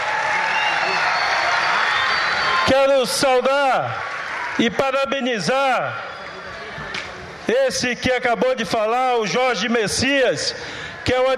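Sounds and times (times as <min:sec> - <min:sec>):
crowd clapping for a governor at an official event: 0:00.0 - 0:05.0
crowd voices: 0:00.0 - 0:11.3
speech: 0:02.7 - 0:06.1, 0:07.5 - 0:11.3.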